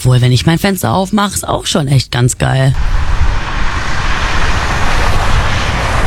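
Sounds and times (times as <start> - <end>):
speech: 0.0 - 3.2
street traffic heard through window: 2.6 - 6.0.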